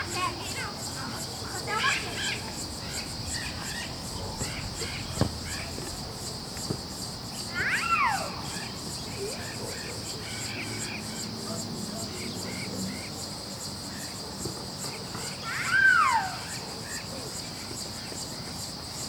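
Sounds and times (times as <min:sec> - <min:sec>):
children talking and shouting while playing ball in a rural setting: 0:00.0 - 0:13.1, 0:14.3 - 0:17.5
cicadas buzzing in the Cerrado: 0:00.0 - 0:19.0
crickets chirping in the Cerrado: 0:00.0 - 0:19.0
children playing ball in a rural setting: 0:05.2 - 0:05.5.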